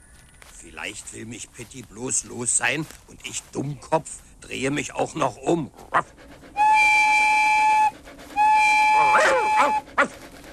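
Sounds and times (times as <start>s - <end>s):
speech: 0.6s - 6.3s
toy locomotive whistle toots: 6.6s - 10.1s
short yelping sounds: 9.0s - 10.1s.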